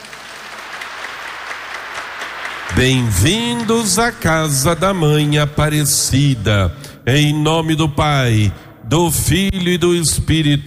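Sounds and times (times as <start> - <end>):
audience applause: 0.0 - 4.5
speech: 2.7 - 10.6.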